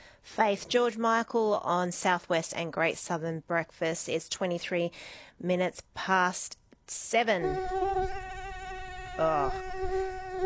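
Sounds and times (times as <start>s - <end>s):
speech: 0.4s - 8.3s, 9.2s - 10.4s
mosquito buzzing: 7.4s - 10.4s.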